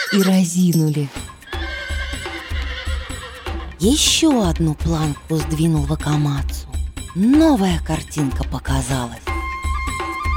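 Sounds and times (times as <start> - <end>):
horse neighing: 0.0 - 0.5, 1.4 - 3.7
speech: 0.1 - 1.3, 3.8 - 9.3.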